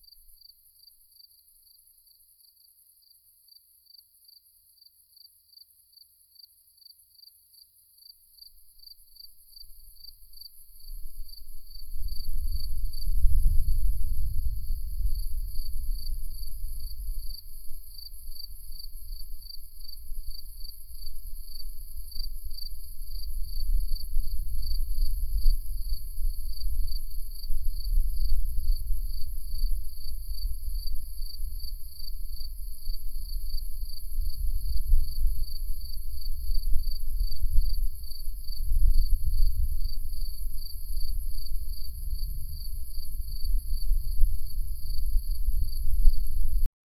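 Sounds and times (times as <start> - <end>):
daytime insects chirping: 8.4 - 13.8, 14.4 - 46.3.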